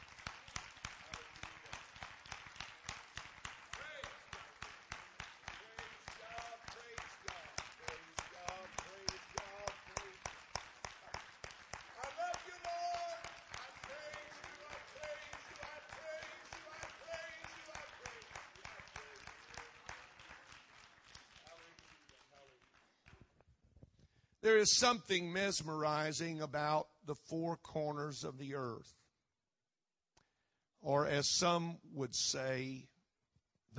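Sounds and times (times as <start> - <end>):
crowd audience clapping hands: 0.0 - 23.4
speech: 24.4 - 29.0, 30.8 - 32.9.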